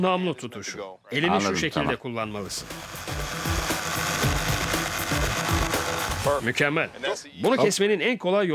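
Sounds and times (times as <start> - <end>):
speech: 0.0 - 3.5, 6.2 - 8.5
jigsaw cutting wood: 2.5 - 6.5.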